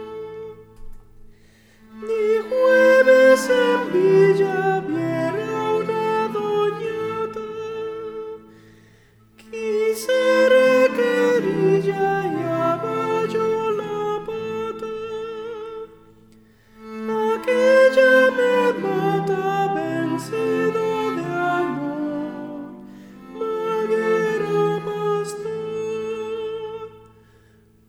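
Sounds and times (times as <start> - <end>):
sopranos and altos singing: 0.0 - 0.8, 1.9 - 8.7, 9.4 - 16.2, 16.8 - 27.2.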